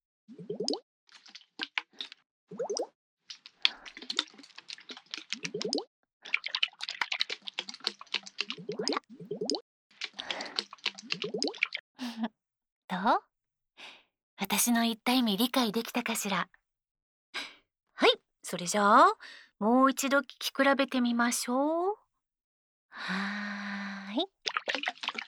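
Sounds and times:
liquid shaken inside a flask-shaped bottle: 0:00.3 - 0:11.8, 0:24.4 - 0:25.2
speech: 0:13.0 - 0:13.3, 0:14.5 - 0:16.6, 0:18.5 - 0:22.0, 0:23.0 - 0:23.5.

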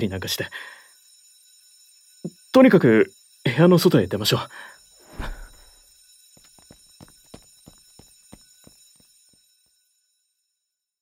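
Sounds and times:
speech: 0:00.0 - 0:00.8, 0:02.2 - 0:05.4
fire alarm ringing: 0:00.0 - 0:10.4
sharp irregular knocks or footsteps: 0:06.4 - 0:09.1.

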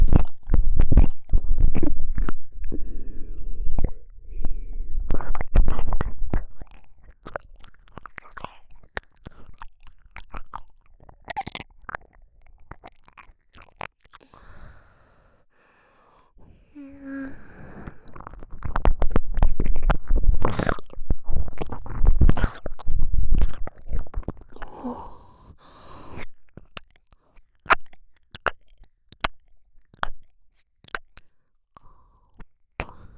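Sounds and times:
ear licking: 0:00.0 - 0:14.5, 0:17.8 - 0:24.8.

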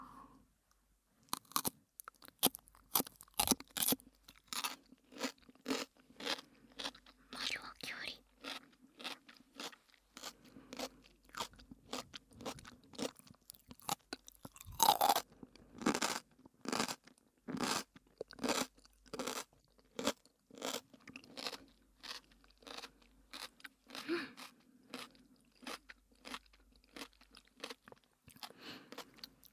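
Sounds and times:
chewing homemade asazuke pickled vegetables with ginger: 0:01.3 - 0:29.5.

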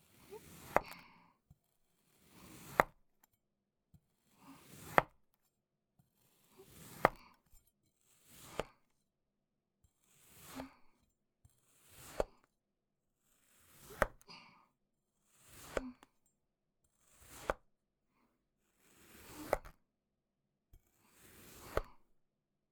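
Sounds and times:
cutting sand clay: 0:00.2 - 0:01.0, 0:02.0 - 0:03.0, 0:04.6 - 0:05.2, 0:06.2 - 0:07.3, 0:08.0 - 0:08.9, 0:10.0 - 0:10.9, 0:11.6 - 0:12.5, 0:13.4 - 0:14.2, 0:15.3 - 0:16.1, 0:17.0 - 0:17.7, 0:18.8 - 0:19.8, 0:21.1 - 0:22.0.

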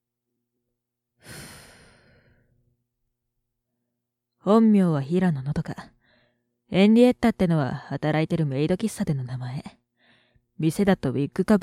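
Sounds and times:
long breathy exhale of cigarette smoke: 0:01.2 - 0:02.5
speech: 0:04.4 - 0:05.9, 0:06.7 - 0:09.8, 0:10.6 - 0:11.6.

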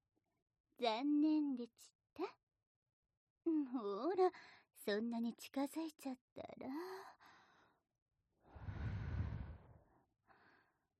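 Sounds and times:
speech: 0:00.8 - 0:02.4, 0:03.5 - 0:07.4
breath blown softly at listener: 0:08.5 - 0:10.6.

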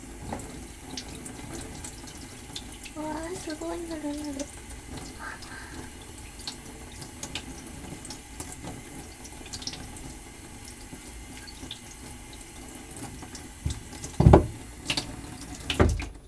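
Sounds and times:
tap water running, rinsing in sink: 0:00.0 - 0:16.2
speech: 0:03.4 - 0:04.6.

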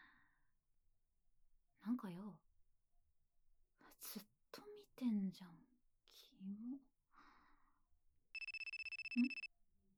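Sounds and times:
speech: 0:02.0 - 0:02.5, 0:03.9 - 0:04.3, 0:05.0 - 0:06.9
mobile phone ringtone for an incoming call: 0:08.4 - 0:09.5.

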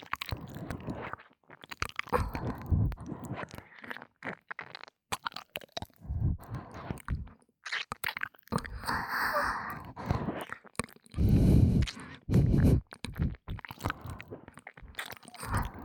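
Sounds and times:
ASMR ear licking sounds: 0:00.0 - 0:15.8
ASMR breathy sighs: 0:00.4 - 0:01.2, 0:02.1 - 0:03.9, 0:05.9 - 0:07.4, 0:08.6 - 0:10.6, 0:11.2 - 0:14.6, 0:15.4 - 0:15.8.

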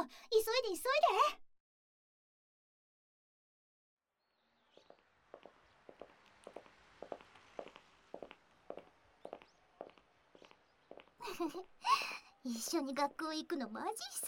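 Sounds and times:
speech: 0:00.1 - 0:01.4, 0:12.5 - 0:14.2
footsteps of two people walking side by side: 0:04.8 - 0:11.8
laughter: 0:11.2 - 0:12.2.

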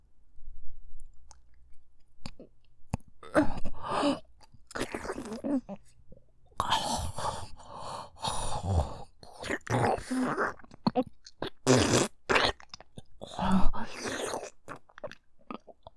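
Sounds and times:
deep throat fellatio sounds with gagging: 0:02.3 - 0:05.9, 0:08.3 - 0:15.9.

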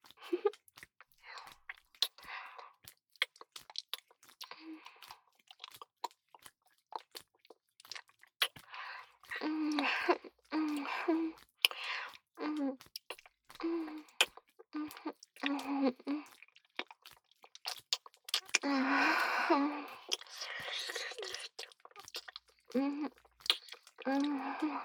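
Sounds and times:
chewing chocolate: 0:00.0 - 0:24.8.

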